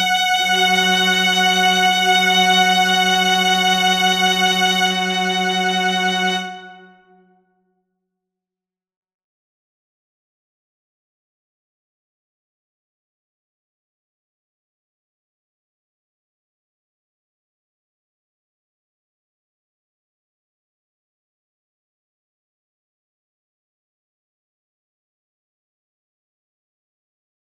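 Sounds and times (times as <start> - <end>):
violin concerto largo: 0.0 - 7.0.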